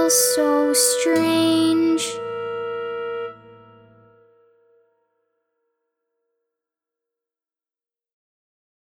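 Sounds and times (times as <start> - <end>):
vocals: 0.0 - 2.4.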